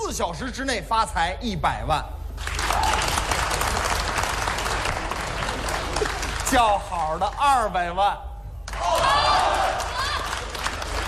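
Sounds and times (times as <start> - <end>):
speech: 0.1 - 3.0, 6.5 - 8.3
audience applause at a comedy show: 2.4 - 6.9, 8.7 - 11.0.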